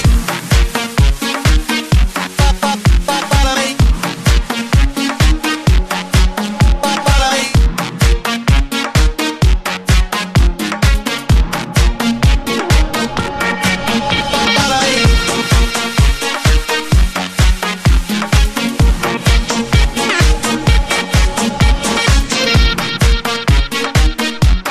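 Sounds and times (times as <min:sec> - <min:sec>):
8-bit music: 0:00.1 - 0:24.7.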